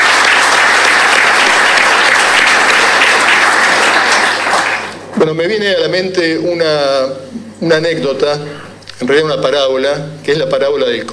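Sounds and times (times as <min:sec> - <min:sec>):
audience applause: 0:00.0 - 0:05.1
speech: 0:05.3 - 0:11.1.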